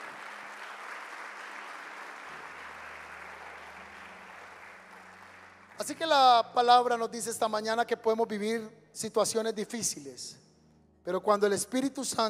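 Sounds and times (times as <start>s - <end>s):
audience applauding: 0.0s - 6.4s
speech: 5.8s - 12.2s.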